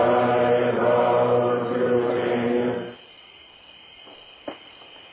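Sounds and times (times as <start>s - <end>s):
chanting: 0.0s - 3.1s.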